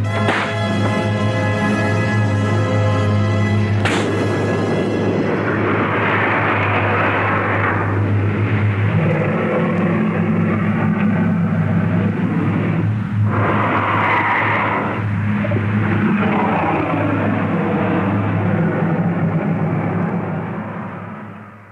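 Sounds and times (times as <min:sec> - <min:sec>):
steady low hum: 0:00.0 - 0:21.6
reverberating slap sound effect: 0:00.2 - 0:01.0, 0:03.8 - 0:04.8.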